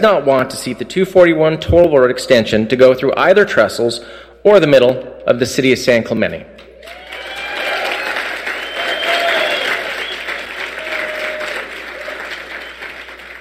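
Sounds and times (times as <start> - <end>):
speech: 0.0 - 6.6
audience applause: 6.8 - 13.3.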